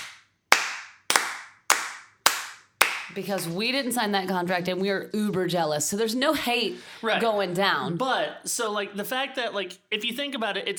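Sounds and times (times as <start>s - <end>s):
slow clap: 0.0s - 3.5s
speech: 3.1s - 10.7s.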